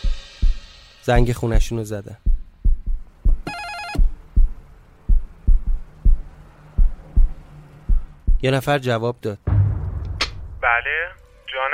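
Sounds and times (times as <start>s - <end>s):
fast heartbeat: 0.0s - 0.6s, 2.2s - 8.4s
speech: 1.0s - 2.3s, 8.4s - 9.5s, 10.7s - 11.7s.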